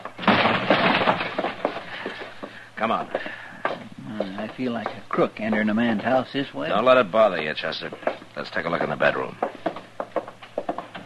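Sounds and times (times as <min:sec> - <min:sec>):
door being busted open: 0:00.0 - 0:02.2
wood splintering: 0:00.0 - 0:11.0
speech: 0:02.8 - 0:03.4, 0:04.2 - 0:09.4.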